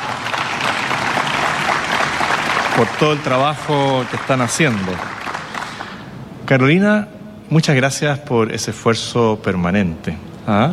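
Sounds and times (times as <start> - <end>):
audience applause for an education team at a public event in Chile: 0.0 - 6.1
speech: 2.8 - 5.2, 6.5 - 10.7.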